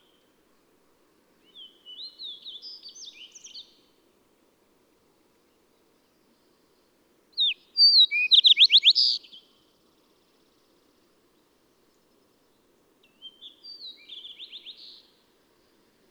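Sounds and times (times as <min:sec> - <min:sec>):
bird song: 0:01.4 - 0:03.9, 0:05.5 - 0:15.8.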